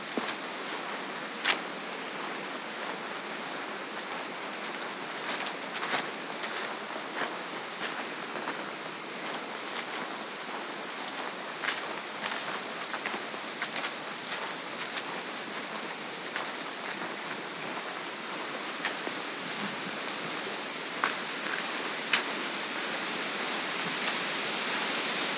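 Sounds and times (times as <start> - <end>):
constant hiss: 0.0 - 25.3
footsteps crunching on a farm trail: 0.1 - 24.2.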